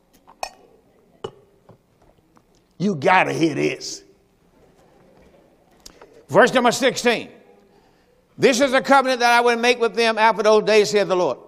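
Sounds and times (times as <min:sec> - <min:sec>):
glass clinking while getting water: 0:00.3 - 0:01.5
speech: 0:02.8 - 0:04.0, 0:06.3 - 0:07.4, 0:08.4 - 0:11.4.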